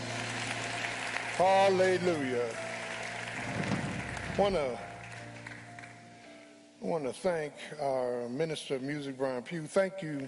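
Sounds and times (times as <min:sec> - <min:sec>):
audience clapping hands: 0:00.0 - 0:06.3
speech: 0:01.4 - 0:02.7, 0:04.4 - 0:04.9, 0:06.8 - 0:10.2.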